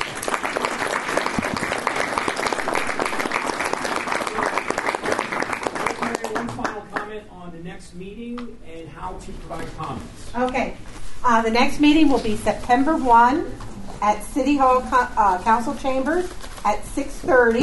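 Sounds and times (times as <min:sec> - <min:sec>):
audience round of applause: 0:00.0 - 0:07.1
speech: 0:07.9 - 0:17.6.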